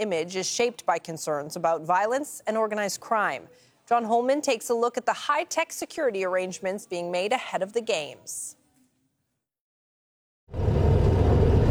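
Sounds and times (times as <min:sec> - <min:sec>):
speech: 0:00.0 - 0:08.6
Mexican-made Black Mamba armored car driving, engine running: 0:10.5 - 0:11.6.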